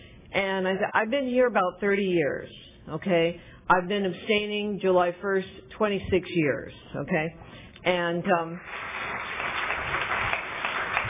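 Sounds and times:
speech: 0:00.4 - 0:08.8
audience applause: 0:08.6 - 0:11.0.

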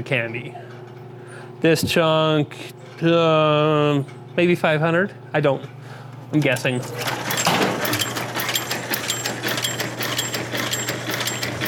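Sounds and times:
speech: 0:00.0 - 0:00.7, 0:01.6 - 0:07.3
candy cutting and wrapping machine running: 0:06.7 - 0:11.6.

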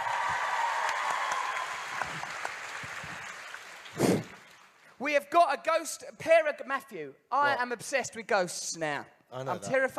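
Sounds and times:
audience clapping: 0:00.0 - 0:05.0
speech: 0:05.1 - 0:09.9.

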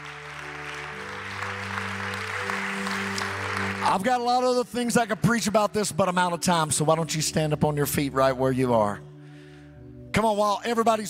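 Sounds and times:
people clapping hands: 0:00.0 - 0:04.7
speech: 0:03.8 - 0:09.1, 0:10.2 - 0:11.0.

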